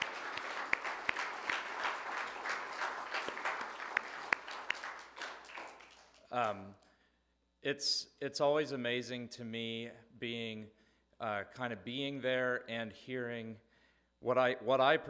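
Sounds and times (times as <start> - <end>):
audience applause: 0.0 - 6.2
speech: 6.3 - 6.8, 7.6 - 15.0.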